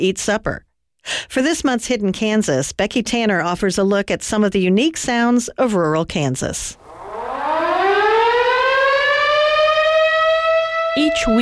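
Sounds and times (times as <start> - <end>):
speech: 0.0 - 6.8, 11.0 - 11.4
rural town whistle siren wailing: 6.8 - 11.4.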